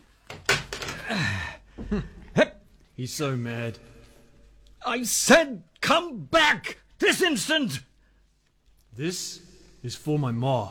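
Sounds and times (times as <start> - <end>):
office door being closed and locked: 0.3 - 1.0
speech: 1.1 - 3.9, 4.8 - 7.9, 9.0 - 10.6.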